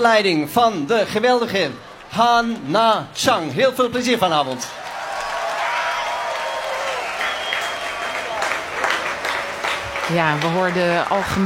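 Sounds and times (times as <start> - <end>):
speech: 0.0 - 4.8, 10.1 - 11.4
audience applauding an orchestra walking onto the stage: 1.8 - 11.4.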